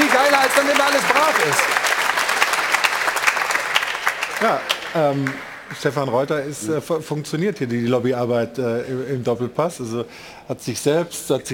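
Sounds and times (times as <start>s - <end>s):
sustained applause from a group: 0.0s - 6.0s
speech: 0.6s - 1.8s, 4.4s - 11.5s.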